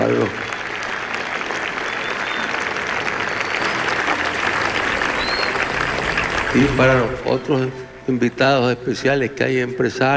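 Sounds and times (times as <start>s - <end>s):
audience applause: 0.0s - 8.0s
speech: 6.5s - 10.1s.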